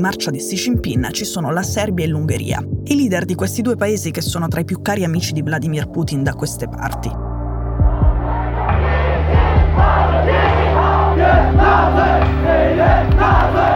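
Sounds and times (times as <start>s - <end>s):
speech: 0.0s - 7.2s
Chinese protesters shouting slogans against NATO outside the US embassy: 8.3s - 13.7s.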